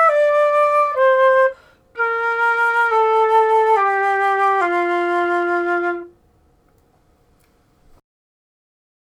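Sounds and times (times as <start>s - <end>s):
flute playing C major, A minor and F major: 0.0s - 6.2s.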